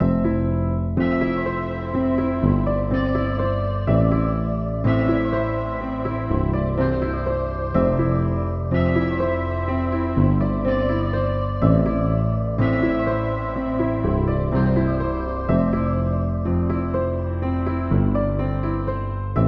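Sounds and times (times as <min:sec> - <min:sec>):
melody in C major at 124 BPM: 0:00.0 - 0:19.4.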